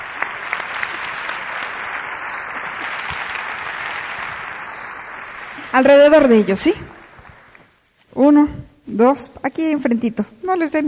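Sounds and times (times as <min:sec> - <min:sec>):
audience applause: 0:00.0 - 0:07.7
speech: 0:05.7 - 0:06.9, 0:08.2 - 0:10.8.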